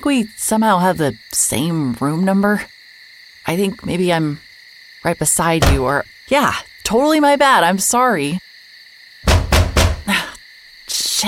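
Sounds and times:
speech: 0.0s - 2.8s, 3.4s - 4.4s, 5.0s - 8.4s
banging on the wall: 9.3s - 10.1s.

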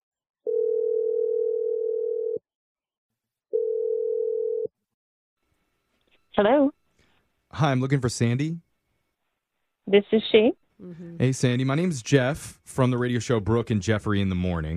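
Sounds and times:
telephone ringback tone: 0.5s - 2.4s, 3.5s - 4.7s
speech: 6.4s - 6.7s, 7.5s - 8.7s, 9.9s - 14.7s.

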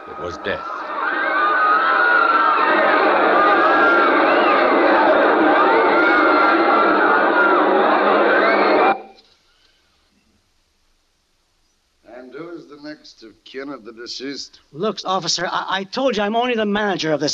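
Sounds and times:
terrified roar of a huge crowd: 0.0s - 9.2s
speech: 0.2s - 0.8s, 13.2s - 17.3s.

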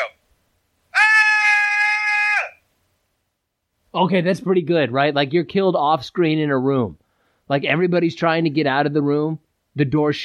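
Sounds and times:
person performing a scream: 0.9s - 2.6s
speech: 4.0s - 10.2s.

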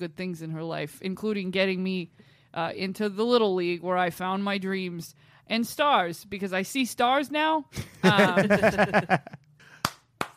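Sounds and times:
speech: 0.0s - 9.4s
laughter: 7.9s - 9.4s
clapping: 9.8s - 10.3s.

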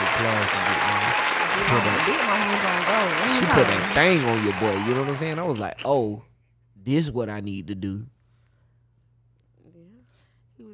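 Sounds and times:
round of applause: 0.0s - 5.6s
speech: 0.2s - 8.2s.

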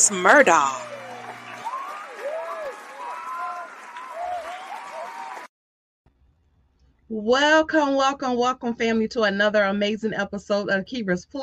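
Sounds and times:
speech: 0.0s - 0.9s, 7.1s - 11.4s
audience applause welcoming a show host: 0.0s - 5.5s.

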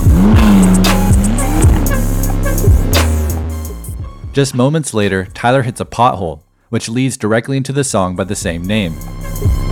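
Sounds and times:
McLaren sports car engine accelerating away: 0.0s - 3.7s
speech: 4.4s - 9.6s.

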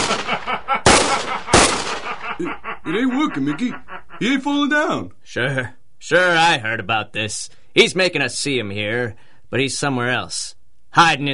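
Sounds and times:
gunfire in an audio drama as gangsters shoot at a costumed hero: 0.0s - 2.4s
laughter: 0.0s - 4.6s
speech: 2.4s - 11.3s.

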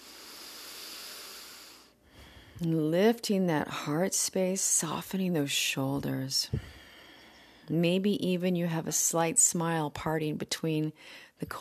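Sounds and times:
slow deep ujjayi breathing through the nose during a yoga class: 0.0s - 2.6s, 6.5s - 7.7s
speech: 2.6s - 6.8s, 7.7s - 11.5s.

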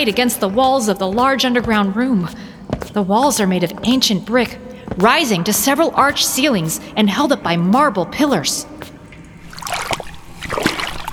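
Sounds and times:
speech: 0.0s - 8.8s
splashing through shallow water in crypt: 9.4s - 11.1s.

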